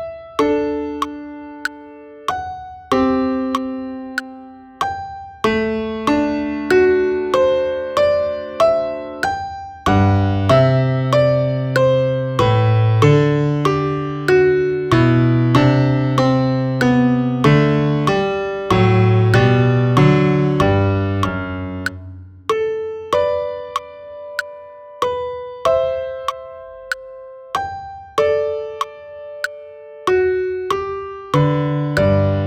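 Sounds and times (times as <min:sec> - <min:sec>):
piano click: 0:00.4 - 0:32.3.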